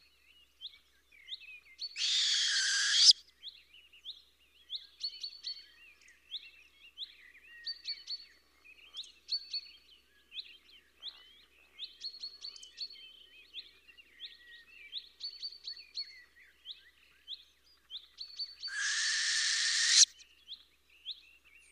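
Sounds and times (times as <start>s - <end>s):
birds chirping: 2.0s - 3.1s, 18.7s - 20.1s
owl screeching: 2.0s - 3.2s, 18.7s - 20.1s.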